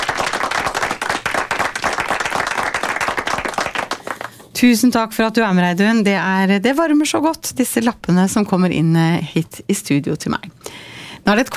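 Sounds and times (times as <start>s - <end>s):
small group applauding in the studio: 0.0s - 4.5s
speech: 4.6s - 10.6s, 11.3s - 11.5s.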